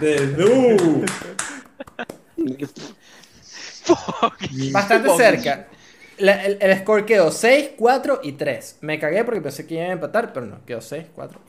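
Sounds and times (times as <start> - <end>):
speech: 0.0 - 1.2, 3.9 - 11.4
applause: 0.0 - 2.2
laughter: 0.3 - 5.7.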